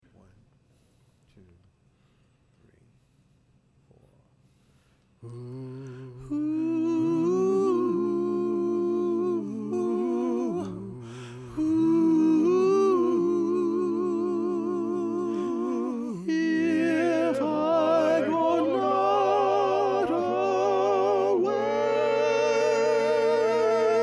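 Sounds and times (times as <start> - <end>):
soprano singing: 6.2 - 24.0.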